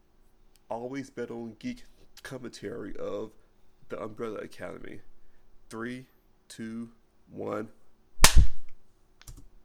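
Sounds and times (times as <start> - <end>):
speech: 0.7 - 5.1, 5.7 - 7.8
single hand clap: 8.2 - 9.4.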